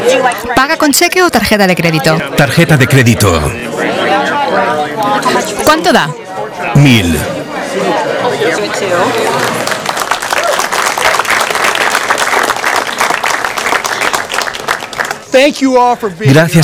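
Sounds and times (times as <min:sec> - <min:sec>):
speech: 0:00.0 - 0:03.9, 0:05.2 - 0:09.7, 0:15.4 - 0:16.6
audience applause: 0:08.4 - 0:15.3.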